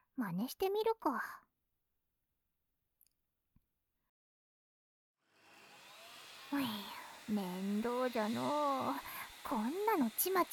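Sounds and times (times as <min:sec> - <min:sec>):
speech: 0:00.2 - 0:01.5, 0:06.5 - 0:10.5
vacuum cleaner sucking up dust in a room: 0:05.3 - 0:10.5.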